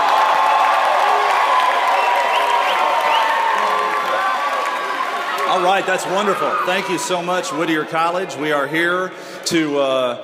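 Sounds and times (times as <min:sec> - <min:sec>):
live studio audience applauding at Whittier College: 0:00.0 - 0:07.2
live studio audience cheering with high whoops: 0:00.0 - 0:07.2
speech: 0:05.6 - 0:10.2.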